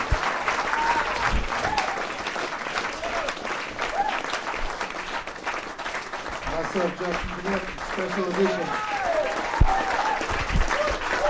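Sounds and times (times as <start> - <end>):
round of applause: 0.0 - 11.2
speech: 6.8 - 8.9.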